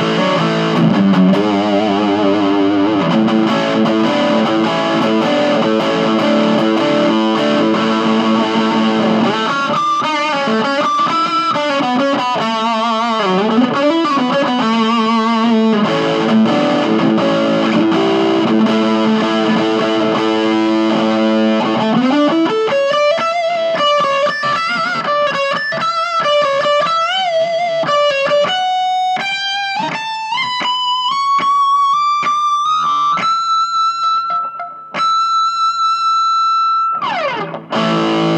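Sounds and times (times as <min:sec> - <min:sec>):
clean electric guitar: 0:00.0 - 0:38.3.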